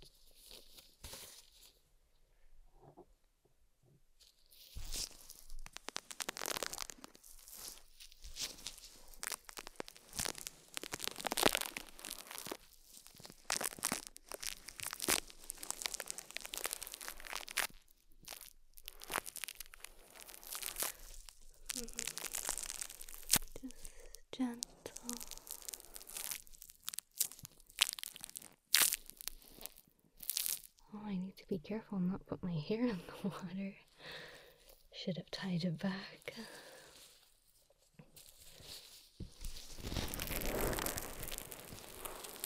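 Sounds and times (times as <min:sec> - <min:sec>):
soapy bubbles crackling: 0:04.6 - 0:30.8, 0:36.2 - 0:37.3, 0:38.2 - 0:42.4
speech: 0:31.7 - 0:33.9, 0:35.1 - 0:36.5.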